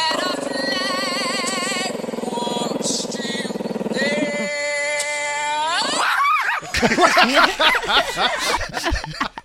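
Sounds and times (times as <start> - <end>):
person singing long wavering notes: 0.0 - 6.2
laughter: 5.7 - 9.4.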